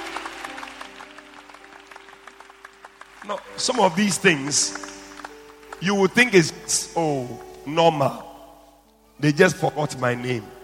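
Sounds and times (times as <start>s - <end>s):
crowd clapping: 0.0s - 7.6s
speech: 3.2s - 5.0s, 5.8s - 8.3s, 9.2s - 10.6s.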